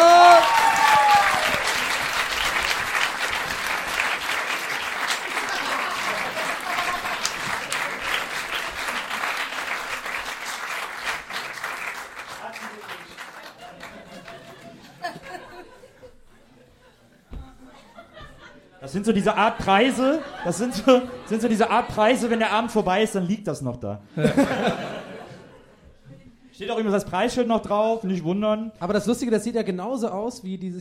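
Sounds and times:
audience applause: 0.0 - 15.3
laughter: 4.8 - 9.7, 12.6 - 22.8, 24.1 - 26.4
speech: 19.1 - 24.9, 26.6 - 30.7.

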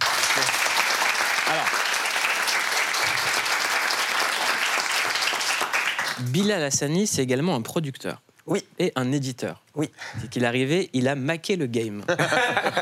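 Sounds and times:
studio audience applause: 0.0 - 6.3
speech: 6.2 - 12.7
laughter: 12.1 - 12.7.

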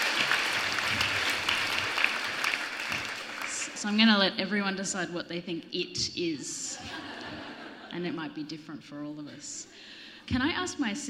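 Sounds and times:
audience applause: 0.0 - 3.8
speech: 3.8 - 7.2, 7.9 - 11.0
laughter: 6.7 - 8.2.

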